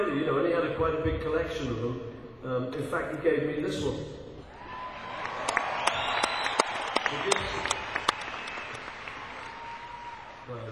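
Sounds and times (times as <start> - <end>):
speech: 0.0 - 4.2, 7.1 - 7.7
audience applause: 4.5 - 10.7.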